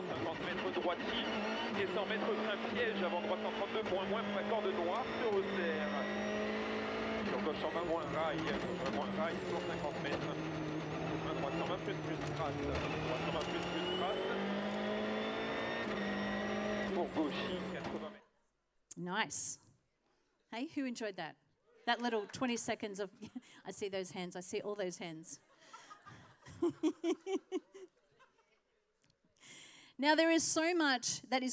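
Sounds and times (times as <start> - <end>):
rally car engines revving across rough terrain: 0.0 - 18.2
speech: 0.4 - 6.5, 7.4 - 10.6, 11.5 - 14.4, 17.0 - 18.2, 19.0 - 19.6, 20.5 - 25.5, 26.1 - 27.9, 30.0 - 31.5
laughter: 25.5 - 28.8.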